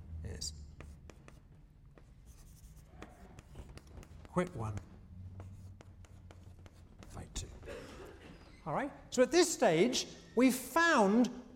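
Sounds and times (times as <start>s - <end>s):
speech: 0.2s - 0.6s, 4.4s - 4.9s, 8.6s - 11.4s
marker or chalk writing on a board during a game theory lecture: 0.7s - 7.5s.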